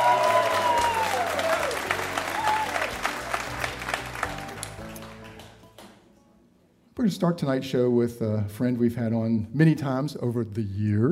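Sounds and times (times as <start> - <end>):
live radio show audience applause at Pensacola's Museum of Commerce: 0.0 - 5.9
speech: 7.0 - 11.1.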